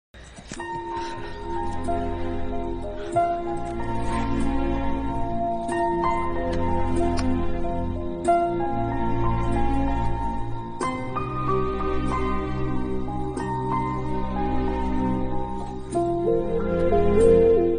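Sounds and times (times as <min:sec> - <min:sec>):
romantic background music: 0:00.2 - 0:17.7.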